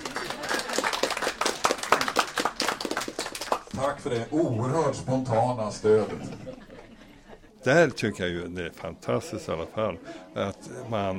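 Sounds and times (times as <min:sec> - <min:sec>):
crowd applause: 0:00.0 - 0:04.0
speech: 0:03.8 - 0:06.7, 0:07.6 - 0:11.1
laughter: 0:05.8 - 0:08.0.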